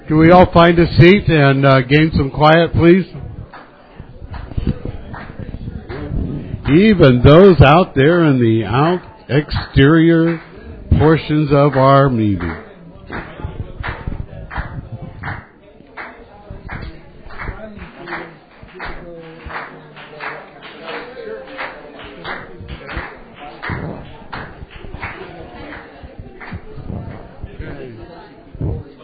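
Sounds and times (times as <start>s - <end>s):
speech: 0.1s - 3.2s, 6.7s - 13.3s
audience clapping: 3.5s - 7.1s, 8.8s - 28.0s.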